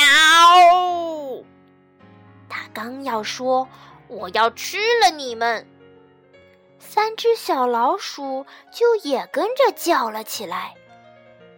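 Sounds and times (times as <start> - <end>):
person's voice imitating a cat's meow: 0.0 - 1.4
speech: 2.8 - 5.7, 6.8 - 10.8.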